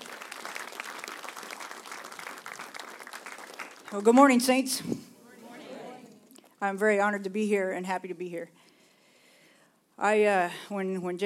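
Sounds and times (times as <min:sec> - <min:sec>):
crowd applauding: 0:00.0 - 0:04.2
speech: 0:03.9 - 0:05.1, 0:06.6 - 0:08.6, 0:10.0 - 0:11.2.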